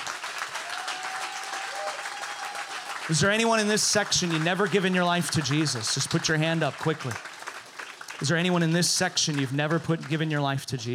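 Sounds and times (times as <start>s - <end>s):
audience applause: 0.0s - 10.9s
speech: 3.1s - 7.3s, 8.2s - 10.9s.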